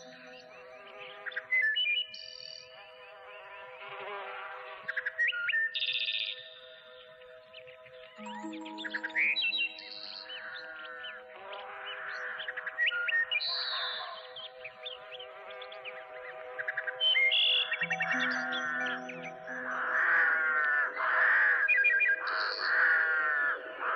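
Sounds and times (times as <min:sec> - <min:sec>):
birds singing: 0:00.0 - 0:23.9.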